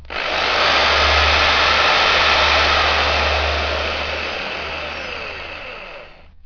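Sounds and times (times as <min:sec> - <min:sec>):
long drill drilling: 0:00.0 - 0:06.4.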